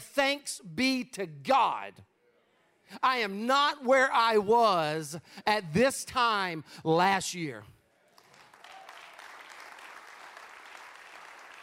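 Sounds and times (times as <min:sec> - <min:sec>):
speech: 0:00.2 - 0:02.1, 0:02.9 - 0:07.8
audience applause: 0:08.1 - 0:11.6.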